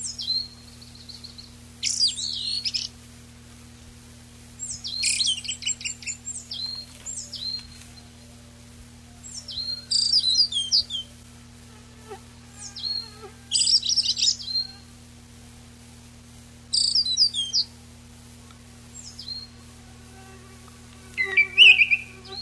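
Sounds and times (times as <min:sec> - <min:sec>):
faint low hum: 0:00.0 - 0:22.3
eyebrowed thrush singing: 0:19.3 - 0:22.3.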